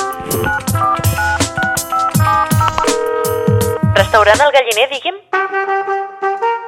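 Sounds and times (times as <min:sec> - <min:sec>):
telephone keypad dialing tones: 0:00.2 - 0:04.4
speech: 0:04.1 - 0:06.4.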